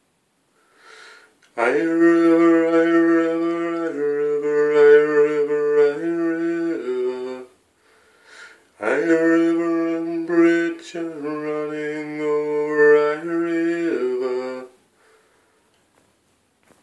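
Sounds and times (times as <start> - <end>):
improvised song sketch: 1.4 - 7.6, 8.7 - 14.8.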